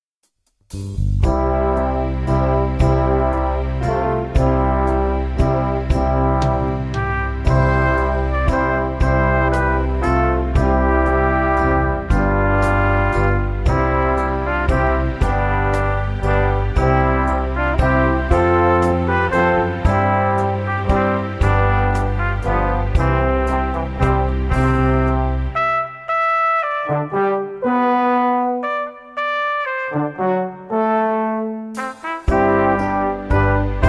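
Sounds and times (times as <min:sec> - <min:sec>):
pastorale played in brass: 0:01.2 - 0:33.8.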